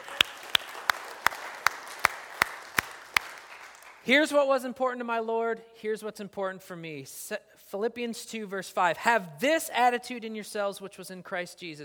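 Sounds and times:
audience clapping: 0.0 - 4.1
speech: 4.0 - 11.8.

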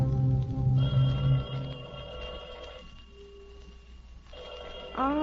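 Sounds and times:
telephone bell ringing: 0.8 - 3.6, 4.3 - 5.1.

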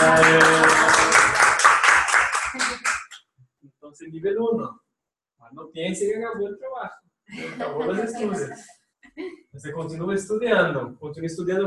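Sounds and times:
applause: 0.0 - 3.2
speech: 4.1 - 4.8, 5.4 - 11.6
laughter: 7.3 - 8.7.

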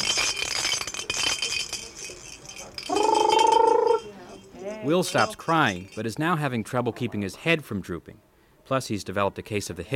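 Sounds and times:
baby noisemaker toys rattling: 0.0 - 6.2
speech: 4.9 - 9.9.

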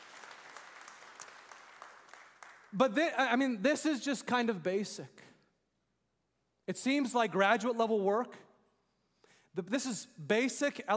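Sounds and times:
audience clapping: 0.0 - 2.8
speech: 2.7 - 5.2, 6.7 - 8.5, 9.6 - 10.9.

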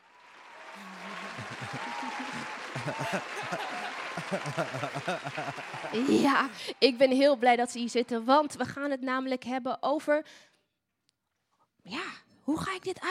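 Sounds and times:
audience applause: 0.0 - 8.6
laughter: 0.7 - 6.8
speech: 2.8 - 10.5, 11.9 - 13.0.

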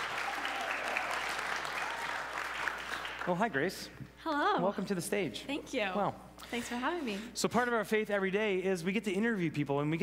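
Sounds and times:
audience at a faith-based school event applauding a guest: 0.0 - 3.9
speech: 3.2 - 10.0.

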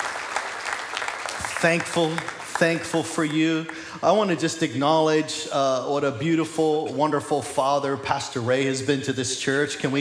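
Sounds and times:
crowd applauding: 0.0 - 4.4
speech: 1.6 - 9.9.

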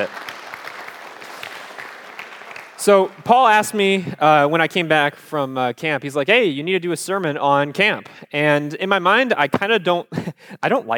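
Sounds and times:
audience round of applause: 0.0 - 3.3
speech: 2.8 - 10.9.

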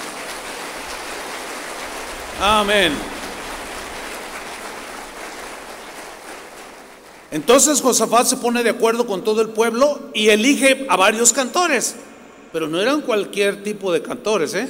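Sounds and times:
audience applause: 0.0 - 7.9
speech: 2.4 - 3.1, 7.3 - 14.6.

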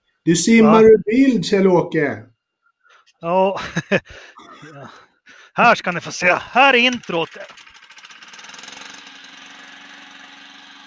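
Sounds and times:
speech: 0.2 - 2.3, 3.2 - 7.6
laughter: 3.4 - 5.0
Honda lawnmower engine running: 5.9 - 10.8.

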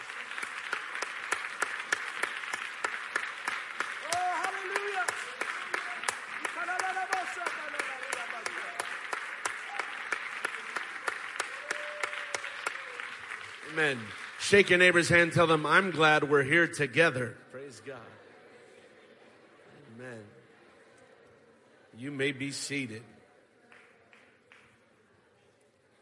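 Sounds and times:
audience clapping hands: 0.0 - 16.4, 23.6 - 25.0
speech: 13.8 - 18.2, 22.0 - 23.2.

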